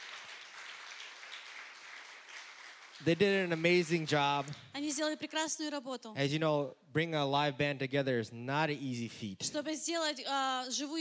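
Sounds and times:
audience applause: 0:00.0 - 0:04.7
speech: 0:03.0 - 0:10.9.

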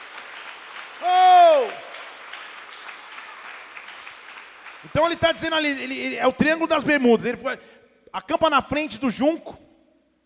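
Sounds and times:
audience applause: 0:00.0 - 0:05.7
speech: 0:04.8 - 0:09.6.

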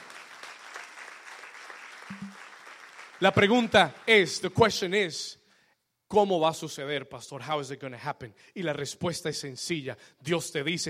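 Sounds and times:
audience applause: 0:00.0 - 0:03.9
speech: 0:03.2 - 0:05.4, 0:06.1 - 0:10.8.

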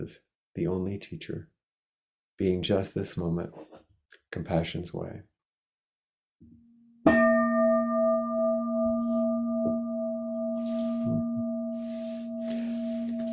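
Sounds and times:
speech: 0:00.0 - 0:01.6, 0:02.4 - 0:03.7, 0:04.3 - 0:05.3
meditation bell ringing: 0:07.1 - 0:13.3.

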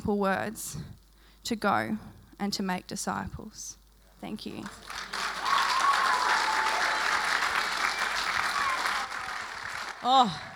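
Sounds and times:
speech: 0:00.0 - 0:05.2, 0:10.0 - 0:10.5
audience applause: 0:04.6 - 0:10.5.

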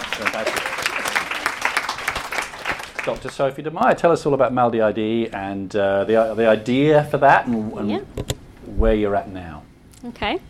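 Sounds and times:
audience applause: 0:00.0 - 0:03.5
speech: 0:00.2 - 0:00.7, 0:03.1 - 0:08.2, 0:08.8 - 0:10.4.

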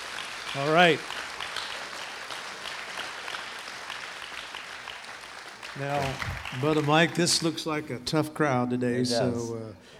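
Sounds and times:
audience applauding a welcomed pastor: 0:00.0 - 0:07.8
speech: 0:00.5 - 0:01.2, 0:05.8 - 0:09.9.

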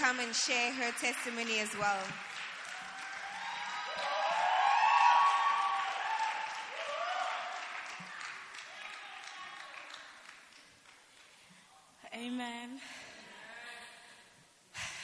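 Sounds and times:
audience clapping hands: 0:00.0 - 0:11.5
speech: 0:00.1 - 0:02.5.

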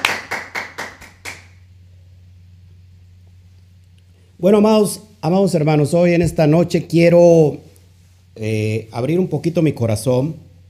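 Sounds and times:
applause: 0:00.0 - 0:01.6
speech: 0:04.4 - 0:07.7, 0:08.4 - 0:10.5.

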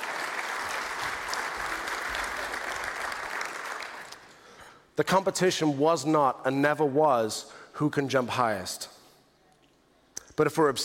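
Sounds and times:
audience applause for contest participants: 0:00.0 - 0:04.3
speech: 0:05.0 - 0:08.9, 0:10.4 - 0:10.8.

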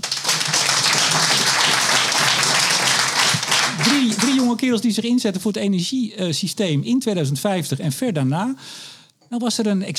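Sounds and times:
crowd applauding: 0:00.0 - 0:04.7
speech: 0:04.6 - 0:09.9.

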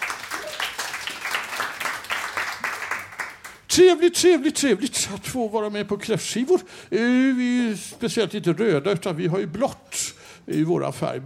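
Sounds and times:
applause: 0:00.0 - 0:03.7
speech: 0:03.7 - 0:11.2.

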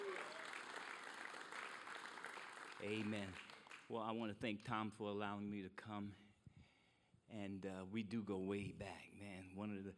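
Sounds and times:
hand clapping: 0:00.0 - 0:03.9
speech: 0:02.8 - 0:06.2, 0:07.3 - 0:09.9.

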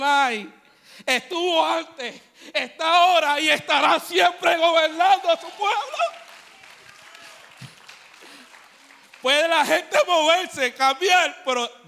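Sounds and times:
speech: 0:00.0 - 0:06.2, 0:09.2 - 0:11.8
audience applauding: 0:04.8 - 0:09.9.

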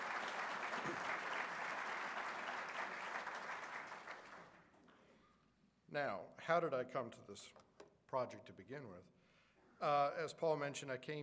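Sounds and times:
audience applause: 0:00.0 - 0:04.7
speech: 0:05.9 - 0:09.2, 0:09.8 - 0:11.2.

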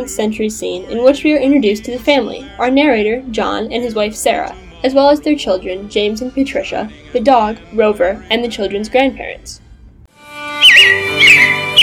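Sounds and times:
speech: 0:00.0 - 0:09.6
robins chirping: 0:10.6 - 0:11.8.

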